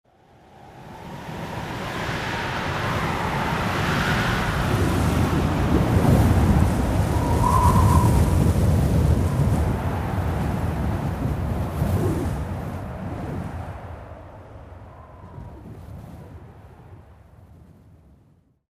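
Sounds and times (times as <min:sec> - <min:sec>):
wind gust at a summit: 0:00.1 - 0:18.2.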